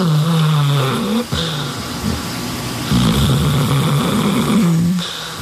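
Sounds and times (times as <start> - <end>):
bear hibernating at Bärenpark Worbis snoring: 0.0 - 2.2, 2.8 - 5.2.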